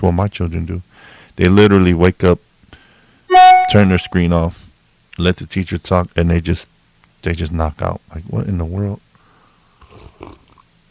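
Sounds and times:
speech: 0.0 - 2.5, 3.3 - 4.6, 5.2 - 9.0, 10.2 - 10.4
person sipping coffee: 9.8 - 10.6.

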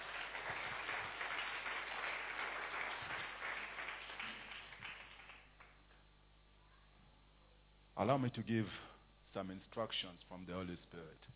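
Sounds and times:
audience clapping: 0.0 - 6.0
speech: 8.0 - 11.3.

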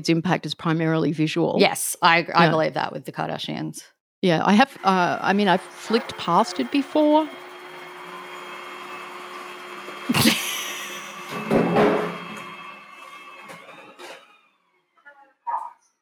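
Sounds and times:
speech: 0.0 - 7.4
robot vacuum cleaner running: 4.6 - 15.2.

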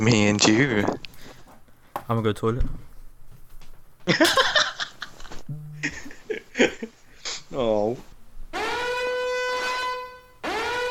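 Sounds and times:
speech: 0.0 - 1.1, 2.1 - 2.9, 4.1 - 4.5, 7.5 - 8.1
laughter: 4.1 - 7.0
alarm sounding: 8.6 - 10.8.

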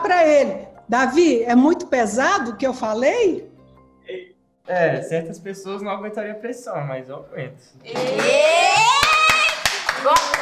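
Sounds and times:
speech: 0.2 - 3.5, 4.1 - 9.1, 10.0 - 10.3
church audience applauding: 8.0 - 10.3.

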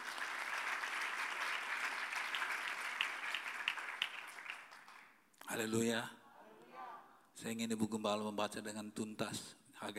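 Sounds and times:
audience applause: 0.0 - 5.1
speech: 5.5 - 6.2, 7.4 - 9.9.

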